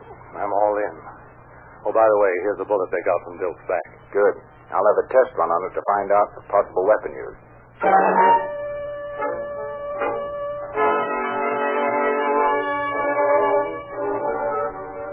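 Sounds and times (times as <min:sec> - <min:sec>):
speech: 0:00.4 - 0:01.1, 0:01.8 - 0:08.6
steam train whistle blasts: 0:07.8 - 0:14.8.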